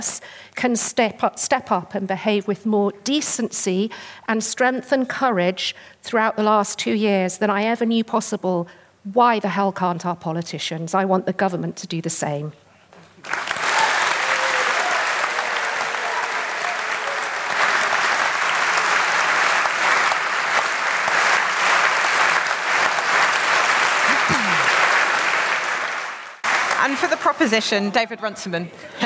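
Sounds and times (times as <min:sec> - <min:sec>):
speech: 0:00.0 - 0:12.6, 0:13.2 - 0:13.5, 0:27.5 - 0:29.0
audience applause: 0:13.2 - 0:27.3
person crying out: 0:24.1 - 0:24.8.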